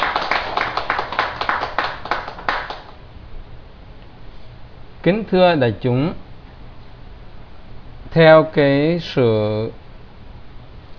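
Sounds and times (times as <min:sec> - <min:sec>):
audience applause: 0:00.0 - 0:03.0
speech: 0:05.0 - 0:06.2, 0:08.2 - 0:09.8.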